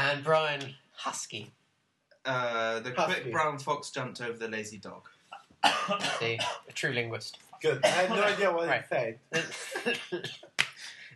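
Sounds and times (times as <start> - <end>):
speech: 0.1 - 1.6, 2.2 - 11.1
people in a group coughing: 5.6 - 6.7, 7.8 - 8.5, 9.3 - 10.6
laughter: 9.3 - 11.0.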